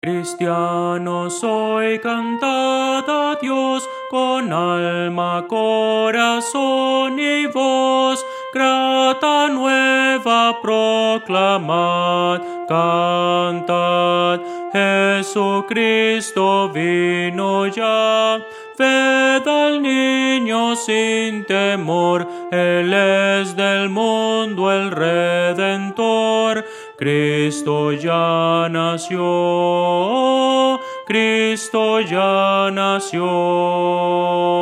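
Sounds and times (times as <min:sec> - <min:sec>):
soprano singing: 0:00.0 - 0:34.6.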